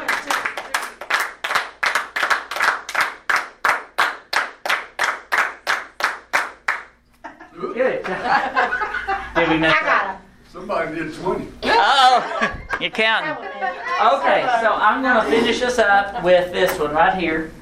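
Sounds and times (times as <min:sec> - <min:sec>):
group clapping hands: 0:00.0 - 0:07.0, 0:12.7 - 0:13.1
laughter: 0:07.2 - 0:10.3, 0:11.6 - 0:16.3
speech: 0:07.7 - 0:08.6, 0:09.4 - 0:10.0, 0:10.7 - 0:17.5.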